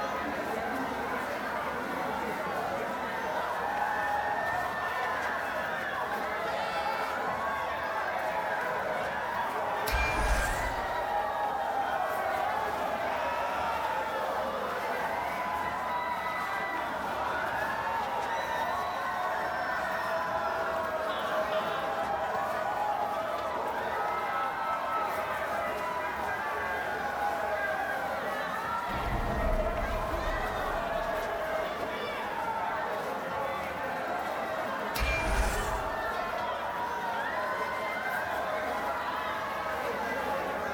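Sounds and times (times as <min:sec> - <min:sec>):
gala crowd ambience: 0:00.0 - 0:40.7.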